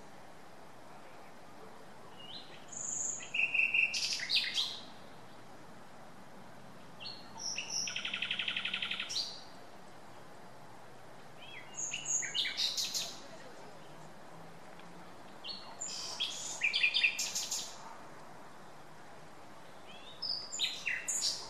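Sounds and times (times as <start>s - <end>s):
common nightingale Luscinia megarhynchos singing whistled rattling and clicking phrases: 2.1s - 5.0s, 7.0s - 9.6s, 11.4s - 14.0s, 15.4s - 17.8s, 19.7s - 21.4s.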